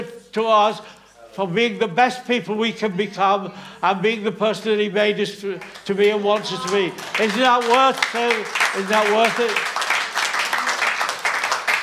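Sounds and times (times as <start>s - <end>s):
speech: 0.4s - 9.7s
audience applause: 5.6s - 11.8s.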